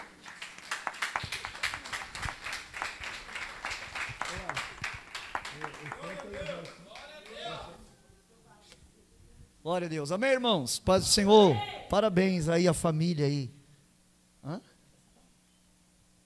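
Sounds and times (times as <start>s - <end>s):
crowd clapping: 0.0s - 7.6s
people cheering or calling: 0.8s - 7.7s
speech: 9.7s - 13.6s.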